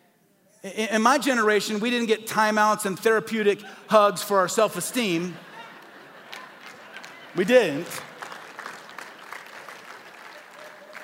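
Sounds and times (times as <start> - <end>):
speech: 0.6 - 5.5, 7.4 - 8.1
laughter: 3.5 - 11.0
audience clapping: 5.5 - 11.0.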